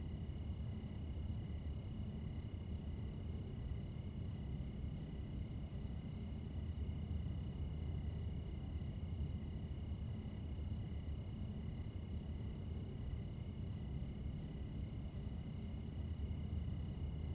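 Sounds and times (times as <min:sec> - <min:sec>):
crickets chirping at night in a suburb: 0:00.1 - 0:17.3.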